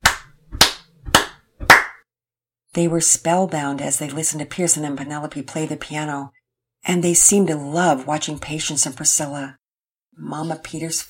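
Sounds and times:
people clapping to the beat: 0.0s - 2.0s
speech: 2.8s - 9.6s, 10.2s - 11.0s.

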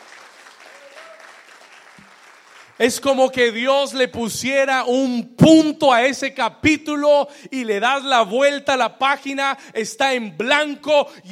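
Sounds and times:
audience applauding: 0.0s - 2.8s
speech: 2.8s - 11.3s.

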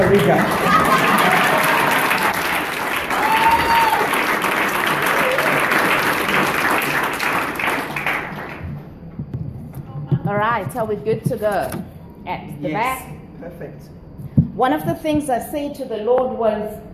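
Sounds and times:
speech: 0.0s - 0.8s, 10.3s - 14.0s, 14.6s - 16.9s
church audience applause welcoming a pastor: 0.0s - 8.9s.

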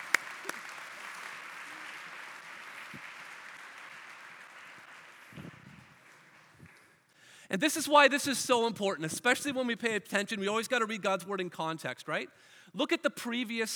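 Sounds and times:
audience applause: 0.0s - 7.0s
speech: 7.5s - 13.7s.

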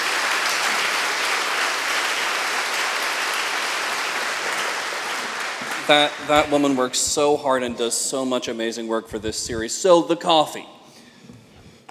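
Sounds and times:
church congregation applause: 0.0s - 8.1s
speech: 5.9s - 10.8s.

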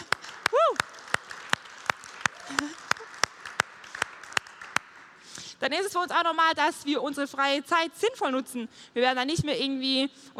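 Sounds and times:
audience applause in church: 0.0s - 5.2s
speech: 5.6s - 10.3s.

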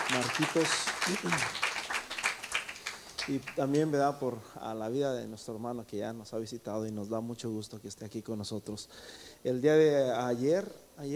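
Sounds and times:
audience applauding: 0.0s - 4.0s
speech: 0.1s - 1.7s, 3.2s - 11.1s.

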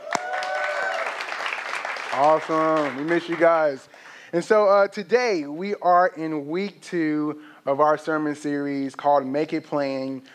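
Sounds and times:
audience clapping: 0.0s - 4.1s
speech: 2.2s - 10.3s.

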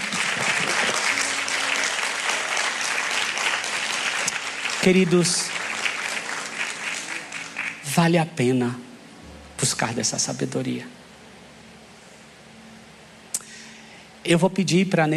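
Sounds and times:
audience applause: 0.0s - 8.1s
speech: 4.8s - 5.6s, 8.0s - 8.8s, 9.6s - 11.0s, 14.3s - 15.1s.

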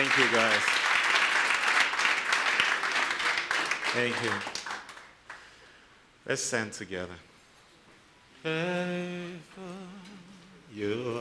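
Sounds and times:
speech: 0.0s - 0.8s, 3.9s - 4.6s, 6.3s - 7.3s, 8.4s - 11.1s
crowd clapping: 0.0s - 5.6s.

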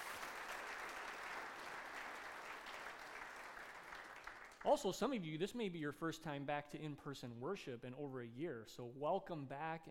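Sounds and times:
church congregation applauding at in-person worship service: 0.0s - 4.7s
speech: 4.6s - 9.9s.

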